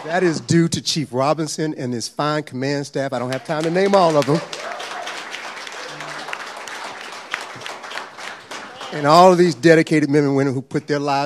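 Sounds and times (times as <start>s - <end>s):
audience applause: 0.0s - 0.5s, 3.2s - 9.6s
speech: 0.0s - 4.7s, 8.9s - 11.2s.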